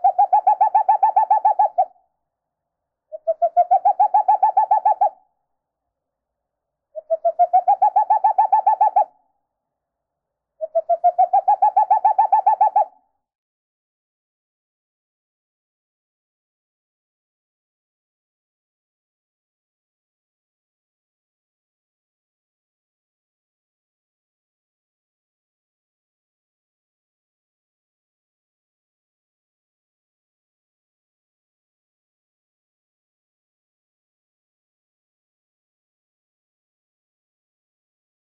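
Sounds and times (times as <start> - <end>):
owl call playback: 0.0 - 2.0, 3.1 - 5.2, 7.0 - 9.2, 10.6 - 13.0.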